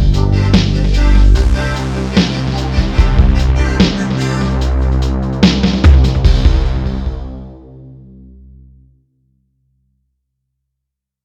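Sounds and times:
formant beat: 0.0 - 7.6.

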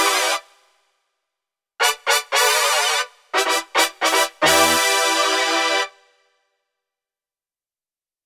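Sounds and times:
slap brass on a Korg Radias-R synthesizer: 1.8 - 5.9.

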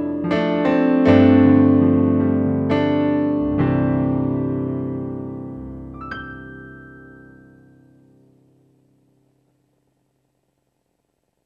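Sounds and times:
synthesizer factory preset grand piano: 0.0 - 9.7.

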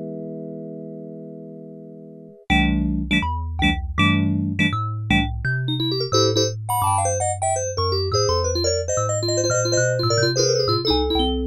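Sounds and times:
synthesizer klink piano factory patch: 2.5 - 11.4.

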